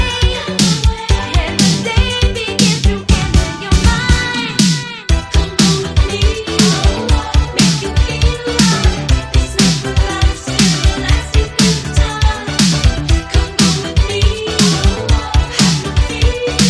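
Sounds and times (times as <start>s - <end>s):
80s dance pop drum beat: 0.0s - 16.6s.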